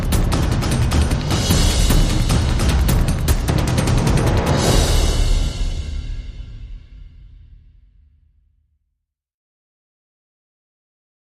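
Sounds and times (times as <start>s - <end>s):
dystopia drums percussion: 0.0s - 8.3s.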